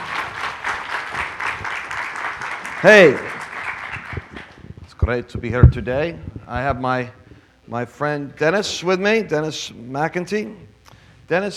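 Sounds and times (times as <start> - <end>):
audience applause welcoming a speaker on stage: 0.0 - 4.6
speech: 2.8 - 3.3, 5.1 - 10.7, 11.3 - 11.5.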